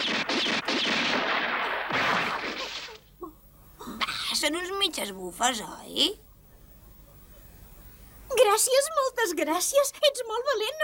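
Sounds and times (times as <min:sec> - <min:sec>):
gunshots fired into the air: 0:00.0 - 0:03.0
louder blast with rumbling tail: 0:00.0 - 0:03.0
speech: 0:04.5 - 0:06.3, 0:08.4 - 0:10.8.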